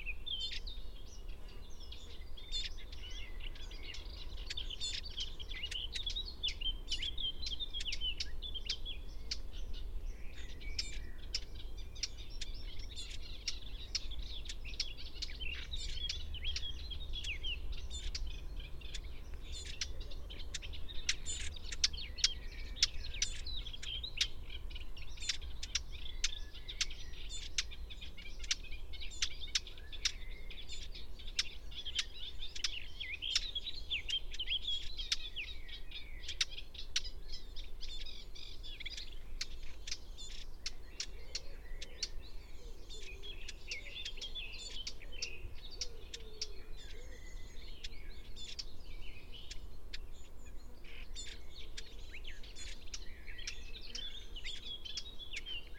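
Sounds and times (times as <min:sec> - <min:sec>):
chorus of high twittering birds: 0:00.0 - 0:55.7
Eurasian blackcap clicking calls: 0:03.9 - 0:07.1, 0:07.7 - 0:09.5, 0:10.5 - 0:24.4, 0:25.1 - 0:35.4, 0:36.2 - 0:37.1, 0:38.8 - 0:42.2.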